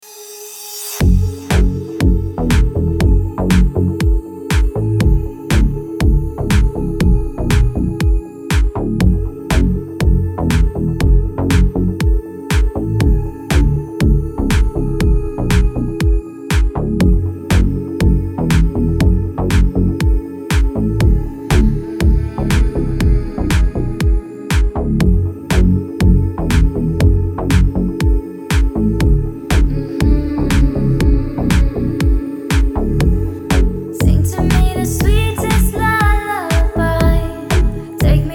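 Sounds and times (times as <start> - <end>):
deep sound remix music: 0.4 - 38.3.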